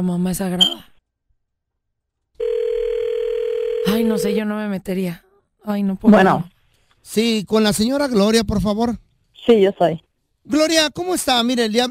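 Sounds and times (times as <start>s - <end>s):
speech: 0.0s - 0.9s, 3.9s - 11.8s
steady electronic telephone tone while placing a call: 2.4s - 4.4s.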